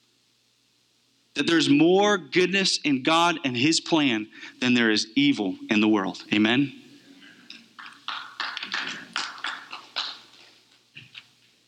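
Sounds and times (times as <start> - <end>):
speech: 1.4 - 6.8
half-hearted clapping from audience: 7.5 - 10.6.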